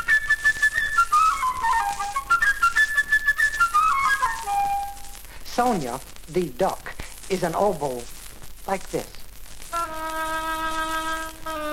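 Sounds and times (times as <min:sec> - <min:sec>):
flute playing a quick chirping melody: 0:00.0 - 0:05.2, 0:09.7 - 0:11.7
speech: 0:05.6 - 0:09.2.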